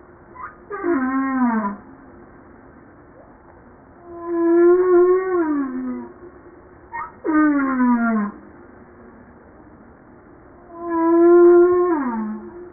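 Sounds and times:
humpback whale song: 0.4 - 1.9, 4.0 - 6.2, 6.9 - 8.4, 10.6 - 12.7.

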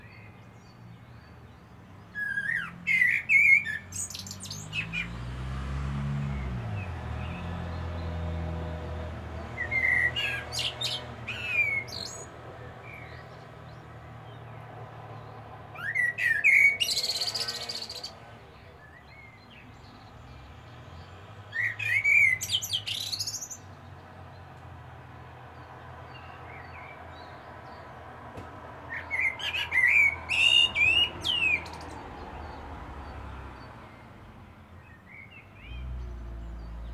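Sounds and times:
Common blackbird singing: 0.0 - 5.2, 6.2 - 24.6, 25.5 - 36.9
vehicle rumbling past: 0.1 - 36.9.

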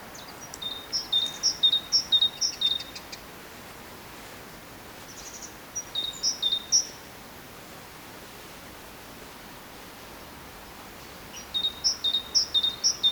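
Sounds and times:
great tit song of crisp paired whistles: 0.2 - 3.1, 11.4 - 13.0.

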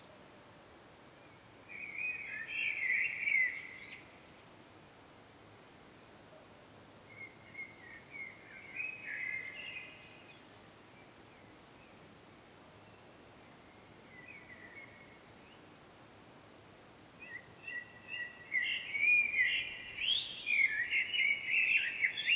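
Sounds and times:
faint background hiss: 0.0 - 22.3
common blackbird song: 1.2 - 4.5, 7.1 - 12.1, 12.8 - 15.7, 17.2 - 22.3.

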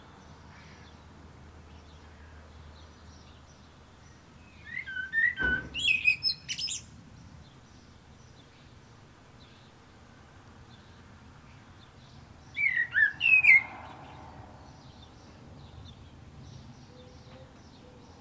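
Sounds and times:
common blackbird singing: 1.7 - 8.8, 10.7 - 18.1.

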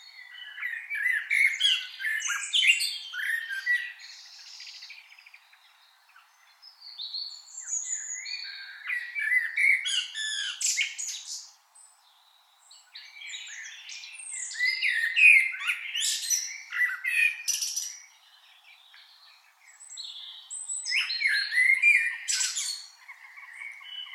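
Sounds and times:
Common blackbird fluted warbling song with squeaky twitters: 0.0 - 11.6, 12.8 - 24.1.

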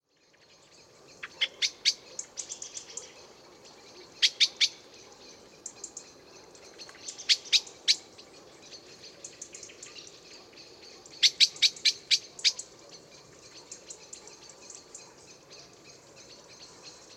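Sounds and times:
common blackbird chink calls: 0.2 - 17.1.

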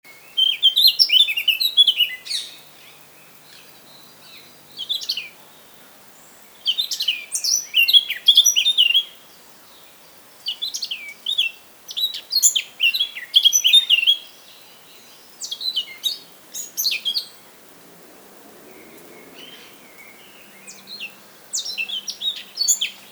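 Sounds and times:
Eurasian blackcap song: 0.0 - 23.1.

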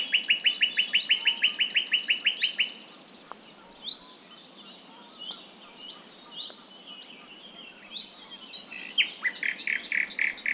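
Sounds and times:
Common nightingale Luscinia megarhynchos singing: 0.0 - 10.5.

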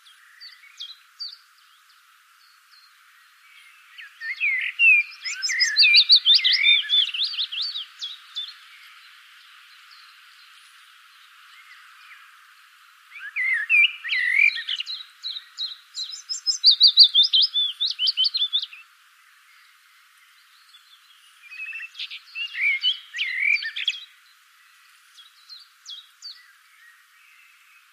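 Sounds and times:
common blackbird song: 0.0 - 27.9.

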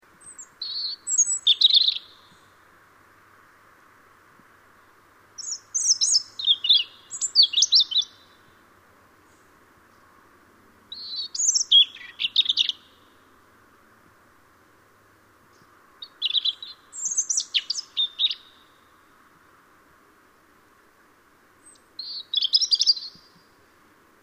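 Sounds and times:
hiss: 0.0 - 24.2
European robin singing: 0.2 - 2.5, 5.4 - 8.5, 10.9 - 13.2, 16.0 - 18.9, 21.6 - 23.5.

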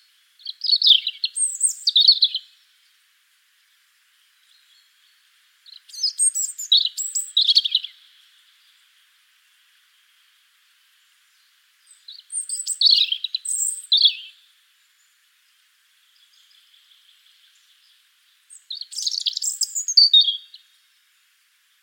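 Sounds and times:
European robin Erithacus rubecula singing: 0.0 - 2.7, 4.3 - 8.9, 11.0 - 21.0.

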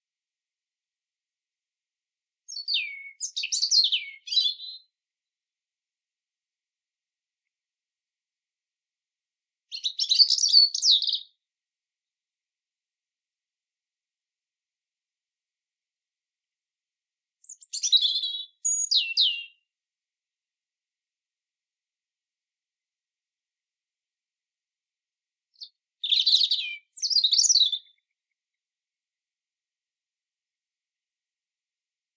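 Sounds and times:
European robin song: 2.5 - 4.9, 9.7 - 11.4, 17.4 - 19.7, 25.5 - 28.3.

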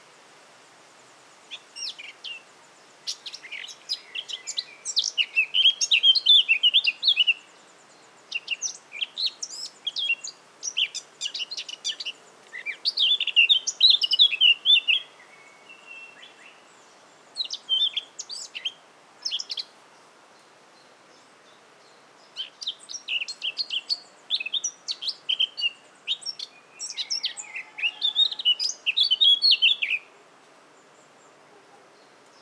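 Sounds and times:
Eurasian blackcap song with scratchy notes and fluty warble: 3.0 - 19.7, 21.8 - 30.1.

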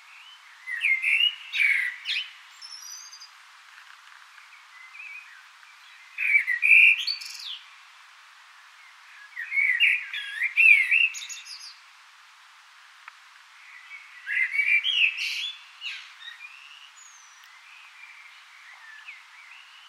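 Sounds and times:
common blackbird singing: 0.1 - 3.3, 4.3 - 7.7, 9.1 - 11.8, 13.6 - 19.8.

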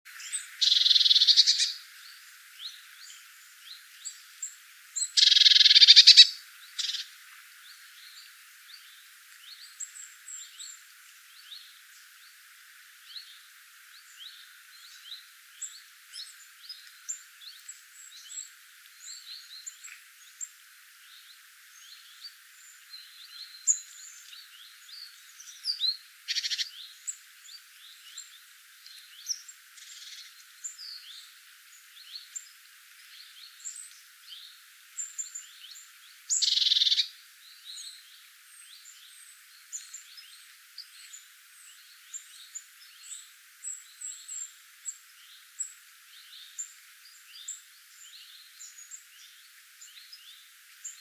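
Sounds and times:
Cyanistes caeruleus: 0.1 - 10.8, 22.9 - 31.3, 31.9 - 51.0.

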